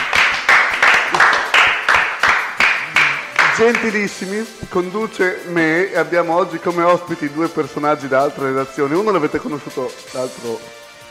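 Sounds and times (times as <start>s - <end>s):
applause: 0.0s - 4.2s
speech: 3.6s - 10.8s.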